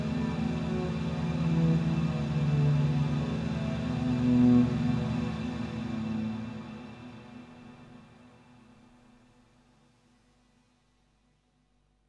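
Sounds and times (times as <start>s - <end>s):
ambient synth pad: 0.0s - 9.6s.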